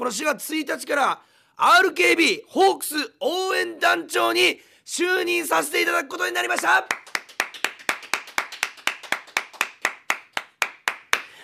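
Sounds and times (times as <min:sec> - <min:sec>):
speech: 0:00.0 - 0:07.1
long applause: 0:06.5 - 0:11.4.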